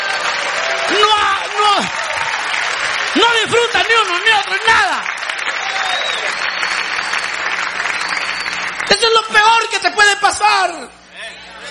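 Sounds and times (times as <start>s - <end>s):
hand clapping: 0.0s - 9.1s
speech: 3.4s - 5.1s, 8.9s - 11.0s.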